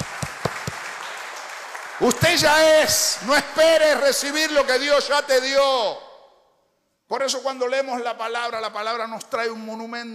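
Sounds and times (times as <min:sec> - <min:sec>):
applause: 0:00.0 - 0:03.2
speech: 0:02.0 - 0:06.0, 0:07.1 - 0:10.1.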